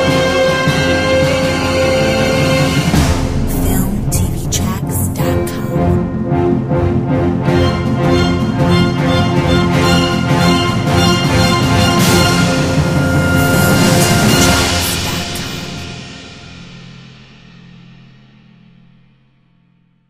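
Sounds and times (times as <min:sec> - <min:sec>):
action game music: 0:00.0 - 0:15.9.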